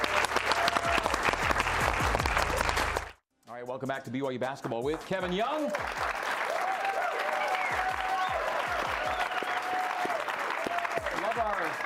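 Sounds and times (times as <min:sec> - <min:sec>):
scattered cheers and whoops: 0:00.0 - 0:01.4, 0:06.4 - 0:11.7
live studio audience applauding: 0:00.0 - 0:03.2, 0:05.2 - 0:11.8
speech: 0:03.8 - 0:06.2.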